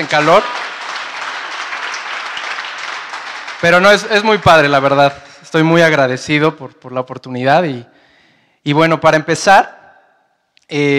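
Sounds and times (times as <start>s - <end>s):
speech: 0.0s - 0.7s, 3.6s - 7.9s, 8.6s - 9.8s, 10.7s - 10.9s
audience applause: 0.0s - 5.0s.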